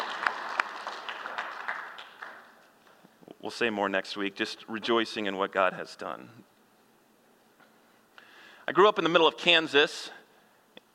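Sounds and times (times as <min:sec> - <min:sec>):
crowd clapping: 0:00.0 - 0:02.7
speech: 0:03.4 - 0:06.5, 0:08.7 - 0:10.2.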